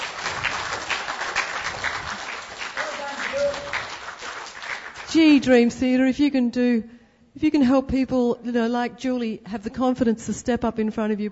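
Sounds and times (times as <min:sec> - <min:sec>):
audience applause: 0:00.0 - 0:05.1
speech: 0:05.1 - 0:11.3.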